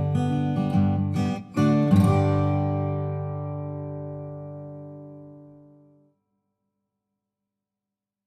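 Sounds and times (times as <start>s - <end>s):
guitars: 0.0s - 6.1s.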